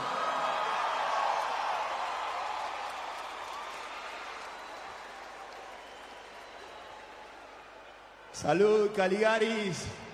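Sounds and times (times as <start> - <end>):
large crowd applause: 0.0 - 7.6
speech: 8.4 - 10.0.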